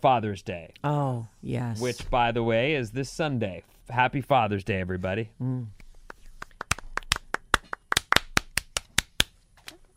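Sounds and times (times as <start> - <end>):
speech: 0.0 - 5.8
sparse clapping from small audience: 6.1 - 9.3.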